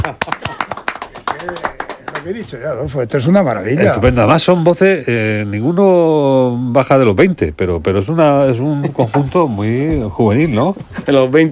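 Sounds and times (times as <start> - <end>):
young vocal ensemble clapping: 0.0 - 2.7
speech: 0.1 - 0.4, 1.4 - 11.5.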